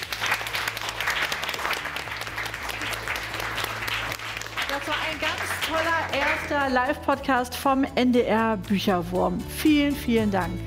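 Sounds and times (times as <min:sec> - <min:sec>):
children clapping: 0:00.0 - 0:06.5
speech: 0:05.1 - 0:10.6.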